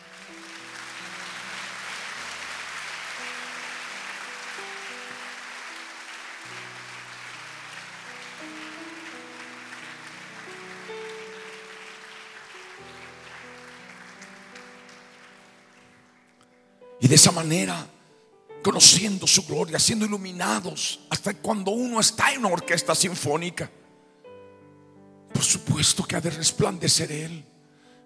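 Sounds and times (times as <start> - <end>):
audience applause: 0.0 - 17.3
speech: 17.0 - 17.9, 18.6 - 23.8, 25.8 - 27.6.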